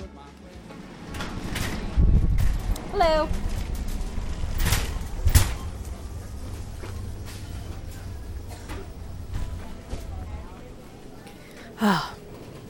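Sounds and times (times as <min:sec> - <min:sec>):
air conditioner whoosh when entering store: 0:00.7 - 0:11.4
speech: 0:03.0 - 0:03.4, 0:11.8 - 0:12.1.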